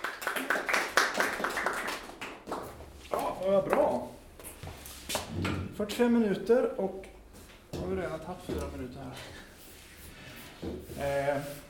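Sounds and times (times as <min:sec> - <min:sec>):
audience applause: 0:00.0 - 0:02.5
speech: 0:03.4 - 0:04.2, 0:05.4 - 0:07.1, 0:07.9 - 0:09.4, 0:10.6 - 0:11.6.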